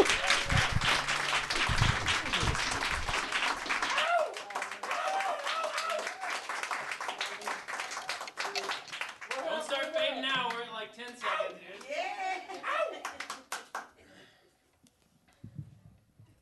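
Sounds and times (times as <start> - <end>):
audience applauding the first act at a live show: 0.0 - 10.6, 11.7 - 14.0.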